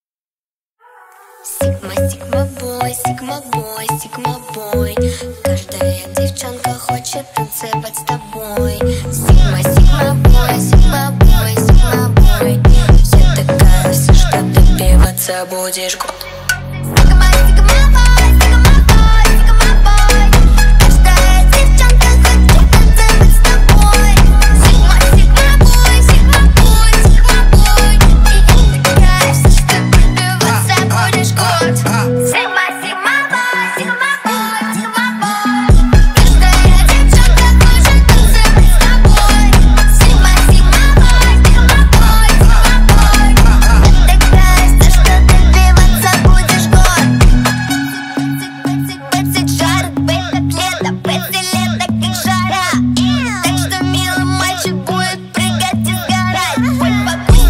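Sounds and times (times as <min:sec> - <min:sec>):
phonk remix: 0:01.4 - 0:57.4.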